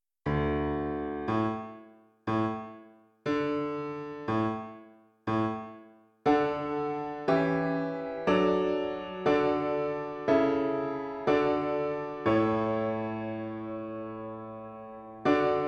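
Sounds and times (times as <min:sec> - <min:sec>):
piano: 0:00.2 - 0:15.6.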